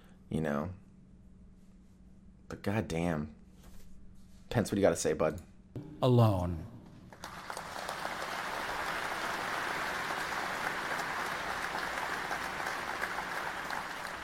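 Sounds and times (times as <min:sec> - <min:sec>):
speech: 0:00.3 - 0:00.8, 0:02.5 - 0:03.4, 0:04.5 - 0:06.7
large crowd applause: 0:07.1 - 0:14.2.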